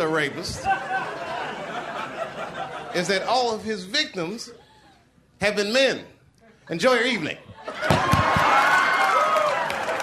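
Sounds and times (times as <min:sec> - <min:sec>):
laughter: 0:00.0 - 0:03.4
speech: 0:00.1 - 0:01.2, 0:02.4 - 0:04.6, 0:05.4 - 0:08.7
audience clapping: 0:07.8 - 0:10.0.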